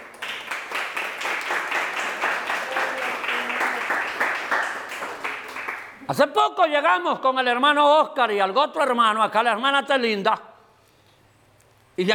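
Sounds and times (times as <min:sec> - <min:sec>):
audience applause: 0:00.0 - 0:06.0
speech: 0:06.1 - 0:10.5, 0:12.0 - 0:12.1.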